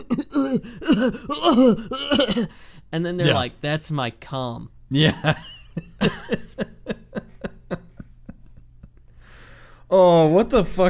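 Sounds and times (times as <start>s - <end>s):
voice imitating someone choking on pollen: 0.0s - 2.5s, 3.2s - 3.4s
speech: 0.0s - 6.7s, 9.9s - 10.8s
laughter: 5.0s - 9.0s.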